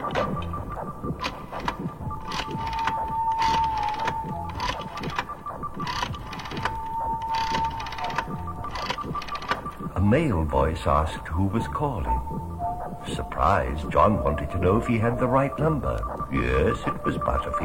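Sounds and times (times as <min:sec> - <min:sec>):
rotary telephone being dialed: 0:00.0 - 0:09.9
speech: 0:10.1 - 0:17.6.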